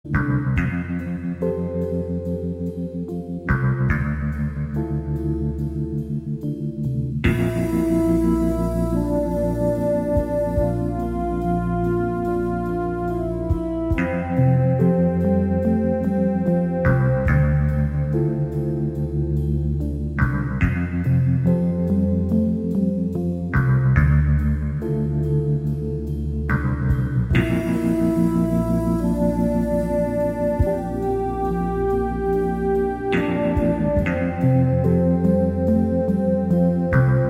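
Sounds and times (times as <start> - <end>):
instrumental title music: 0.0 - 37.2.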